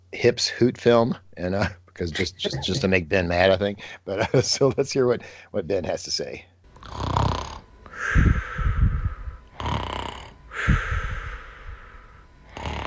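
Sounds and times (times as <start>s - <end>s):
speech: 0.1s - 7.1s
person snoring while napping: 6.8s - 12.8s.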